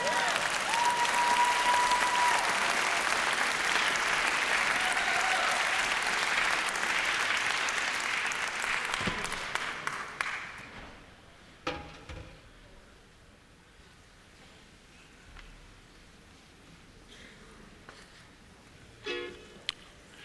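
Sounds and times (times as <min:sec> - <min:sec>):
audience applauding as a ukulele band is welcomed to the stage: 0:00.0 - 0:10.8.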